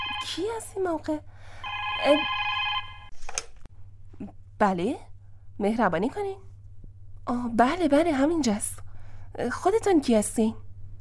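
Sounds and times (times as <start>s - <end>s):
telephone ringing: 0.0s - 0.7s, 1.5s - 3.1s
speech: 0.2s - 2.4s, 4.2s - 6.5s, 7.2s - 8.8s, 9.4s - 10.6s.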